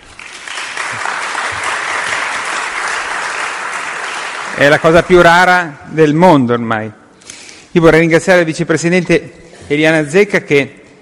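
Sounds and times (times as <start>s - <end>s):
audience applause: 0.0s - 4.9s
speech: 4.6s - 7.0s, 7.7s - 10.8s.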